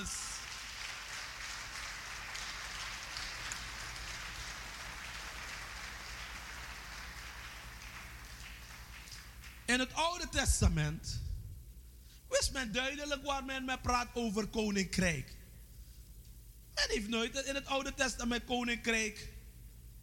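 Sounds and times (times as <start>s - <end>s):
crowd applauding: 0.0s - 9.7s
speech: 9.7s - 11.3s, 12.5s - 15.4s, 16.8s - 19.4s.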